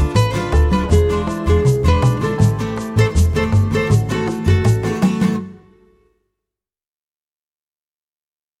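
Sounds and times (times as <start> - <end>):
Latin style guitar: 0.0 - 6.1.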